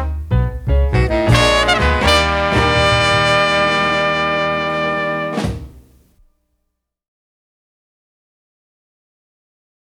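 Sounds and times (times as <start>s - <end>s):
jazz music: 0.0s - 6.3s.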